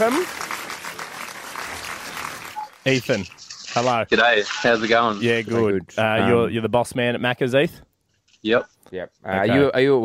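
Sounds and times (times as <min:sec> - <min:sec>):
speech: 0:00.0 - 0:00.4, 0:02.8 - 0:10.0
crowd applause sound effect: 0:00.0 - 0:02.9.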